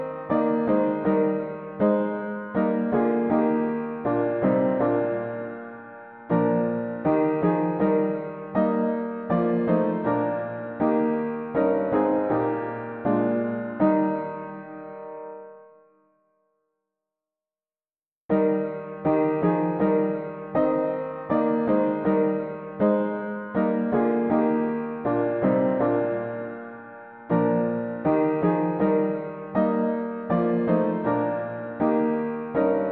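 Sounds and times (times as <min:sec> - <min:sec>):
mono piano playing hymns: 0:00.0 - 0:15.8, 0:18.3 - 0:32.9.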